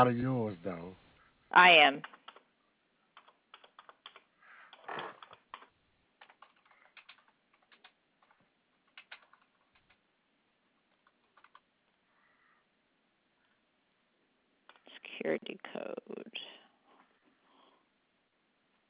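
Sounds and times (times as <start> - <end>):
speech: 0.0 - 2.2, 15.2 - 16.4
credit card details typed on a computer keyboard: 2.0 - 2.5, 3.1 - 10.0, 10.8 - 11.7.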